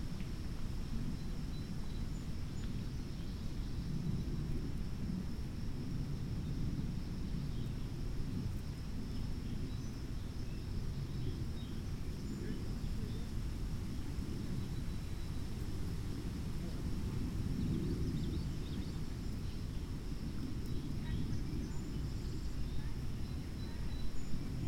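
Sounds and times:
wind through an oak and hickory stand: 0.0 - 24.6
faint ticks: 0.2 - 0.4.

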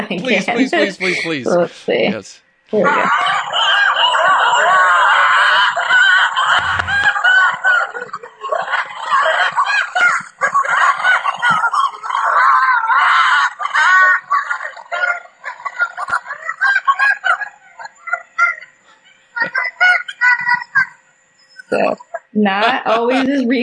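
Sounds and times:
laughter: 0.0 - 1.6, 2.8 - 21.0, 21.7 - 23.6
speech: 0.1 - 3.8, 22.4 - 23.6
family of wolves, adults and pups, howling: 2.9 - 17.4.

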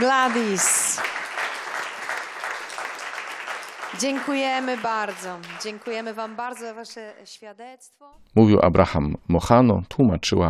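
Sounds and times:
speech: 0.0 - 1.0, 3.9 - 10.4
audience applause: 0.0 - 7.1.

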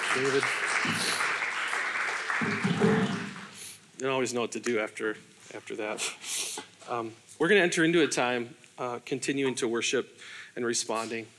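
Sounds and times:
audience applause: 0.0 - 3.6
speech: 0.2 - 1.3, 4.0 - 11.3.

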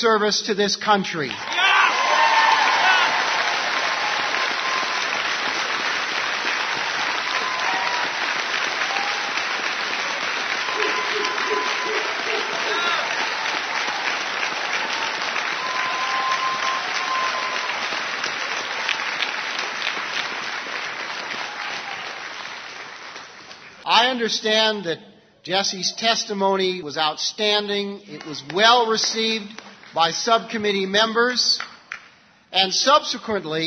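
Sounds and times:
speech: 0.0 - 1.6, 24.2 - 31.7, 32.5 - 33.6
audience applause: 1.3 - 23.8.

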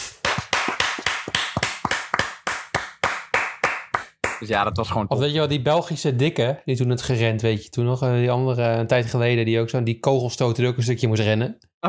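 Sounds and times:
applause: 0.1 - 4.4
speech: 4.4 - 11.8.

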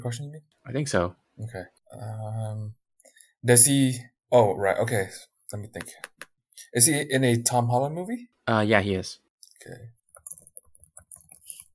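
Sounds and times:
speech: 0.0 - 2.8, 3.4 - 10.0
typing on a keyboard: 10.2 - 11.7.

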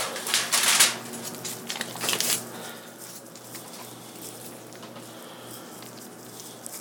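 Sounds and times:
tin foil crinkling as it is rolled around a seasoned potato: 0.0 - 6.8.

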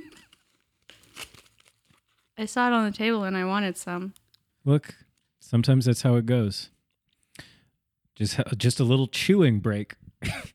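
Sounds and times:
chocolate orange foil crinkling: 0.1 - 2.4
speech: 2.4 - 6.8, 8.2 - 10.5.

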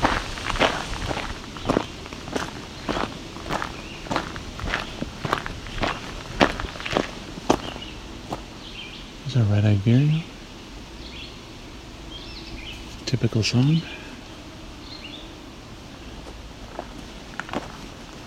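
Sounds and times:
footsteps walking over leaf litter and brush into the woods: 0.0 - 8.5, 16.2 - 18.2
soft outdoor hiss: 0.0 - 18.2
speech: 9.4 - 10.3, 13.1 - 14.0.

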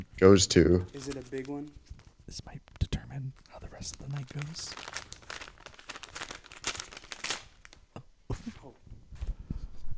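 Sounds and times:
speech: 0.2 - 5.1
awards envelope tearing open at an awards ceremony: 0.9 - 2.2, 3.8 - 7.8.

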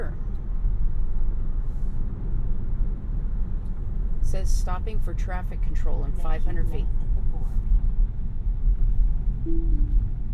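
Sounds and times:
engine and road rumble: 0.0 - 10.3
speech: 4.3 - 7.6, 9.5 - 10.0
car autonomous-driving disengage alert tone: 9.4 - 10.3.

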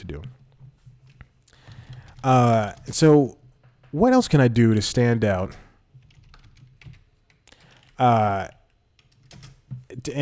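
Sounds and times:
speech: 0.0 - 0.4, 2.2 - 5.6, 8.0 - 8.6
typing on a computer keyboard: 1.0 - 3.1, 5.9 - 10.0.

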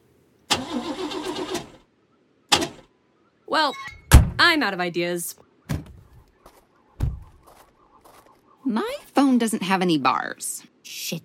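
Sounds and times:
car engine being restarted: 0.5 - 1.8
speech: 3.6 - 5.4, 8.7 - 11.2.

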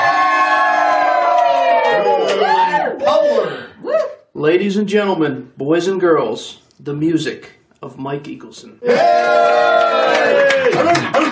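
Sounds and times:
crowd of fans cheering loudly: 0.0 - 4.2, 8.8 - 11.3
many overlapping voices whooping and hollering: 0.0 - 4.2, 8.8 - 11.3
speech: 4.4 - 11.3.

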